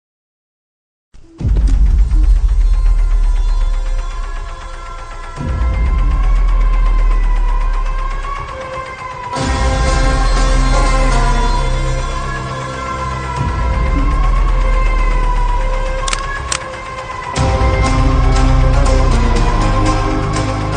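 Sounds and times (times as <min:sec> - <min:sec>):
gun scene background music ringtone: 0:01.4 - 0:20.7.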